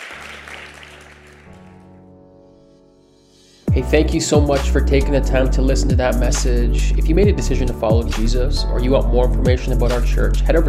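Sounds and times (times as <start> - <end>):
audience clapping: 0.0 - 2.0
speech: 3.8 - 10.6.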